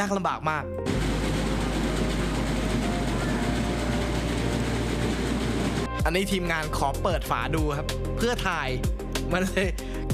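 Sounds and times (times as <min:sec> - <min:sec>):
speech: 0:00.0 - 0:01.0, 0:06.0 - 0:10.0
fish scaling machine beating scales off small fish: 0:00.9 - 0:06.0.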